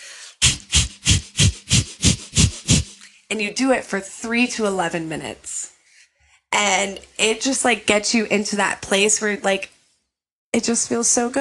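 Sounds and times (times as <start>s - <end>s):
person doing breath of fire with rapid sharp nose breaths: 0.0s - 3.2s
speech: 3.3s - 5.5s, 6.6s - 9.8s, 10.6s - 11.4s.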